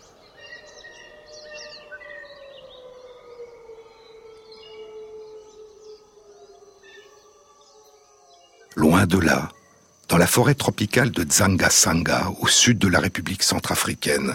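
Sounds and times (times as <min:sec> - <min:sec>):
wolves howling in a chorus: 0:00.0 - 0:09.8
speech: 0:08.8 - 0:09.6, 0:10.2 - 0:14.3.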